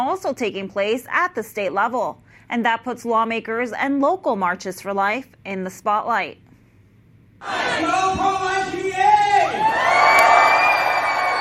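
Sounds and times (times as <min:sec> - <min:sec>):
speech: 0:00.1 - 0:06.4, 0:07.4 - 0:10.3
crowd cheering at a rally: 0:07.4 - 0:11.4.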